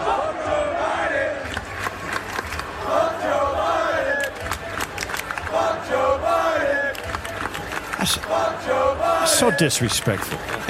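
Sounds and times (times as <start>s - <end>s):
large stadium crowd chanting: 0.0s - 9.6s
scattered claps: 1.4s - 8.4s, 9.8s - 10.6s
speech: 9.4s - 10.6s.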